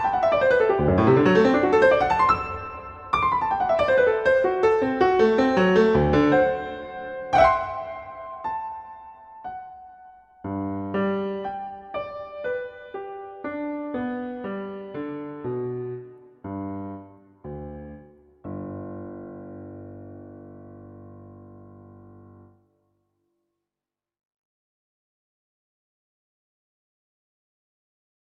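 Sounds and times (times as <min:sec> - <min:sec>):
prelude in G major: 0:00.0 - 0:22.6.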